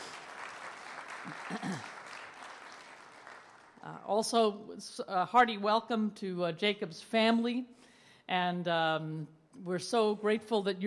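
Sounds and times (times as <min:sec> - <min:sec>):
MCC Tampa church congregation applauding: 0:00.0 - 0:03.8
speech: 0:01.2 - 0:02.0, 0:03.9 - 0:10.8.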